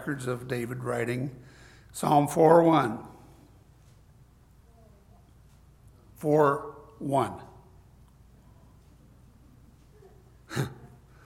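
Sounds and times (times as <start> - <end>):
speech: 0.0 - 3.1, 6.2 - 7.5, 10.6 - 10.8
sneeze into a face mask: 10.5 - 11.0.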